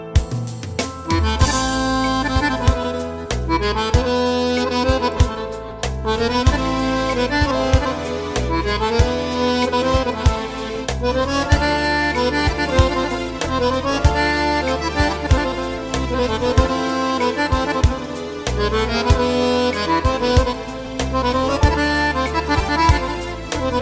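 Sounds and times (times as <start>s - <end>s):
accordion: 0.0s - 23.8s.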